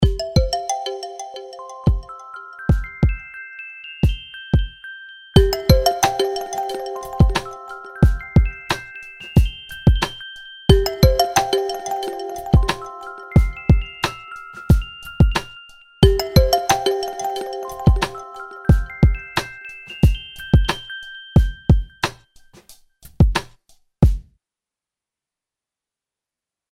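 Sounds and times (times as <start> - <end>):
rhythmic ringtone: 0.0 - 3.3, 5.4 - 22.1.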